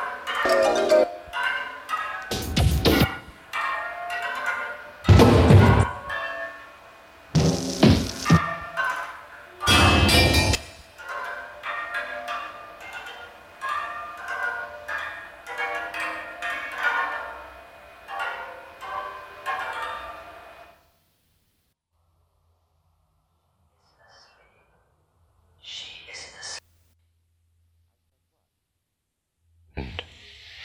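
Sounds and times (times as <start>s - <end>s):
percussion: 0.0s - 6.3s, 7.3s - 17.1s.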